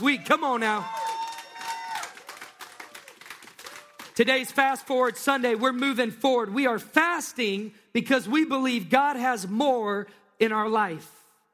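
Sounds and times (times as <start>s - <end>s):
speech: 0.0s - 1.0s, 4.2s - 11.2s
audience clapping and cheering: 0.0s - 6.1s.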